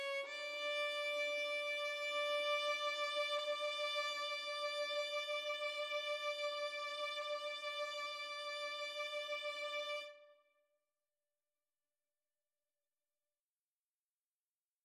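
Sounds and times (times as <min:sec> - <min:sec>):
violin: 0:00.0 - 0:10.4.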